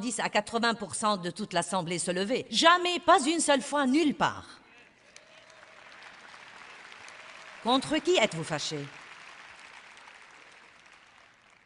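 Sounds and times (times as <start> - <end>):
speech: 0.0 - 4.6, 7.6 - 9.0
weak audience applause: 4.9 - 11.6.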